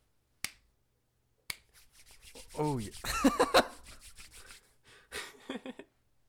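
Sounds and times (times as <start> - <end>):
handshake Foley hand slaps: 0.4 - 0.7, 1.5 - 1.8
handshake Foley hands rubbing and rustling: 1.5 - 4.7
speech: 2.6 - 3.7
laughter: 2.6 - 3.8, 5.1 - 5.9.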